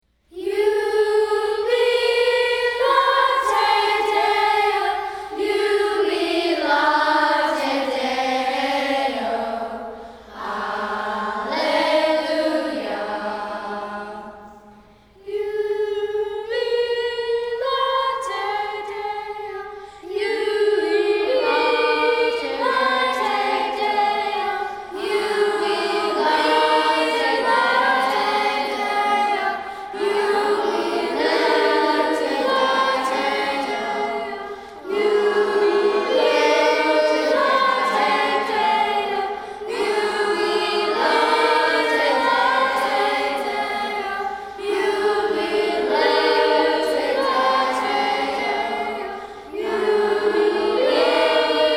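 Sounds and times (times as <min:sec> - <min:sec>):
children's choir singing: 0:00.2 - 0:51.7.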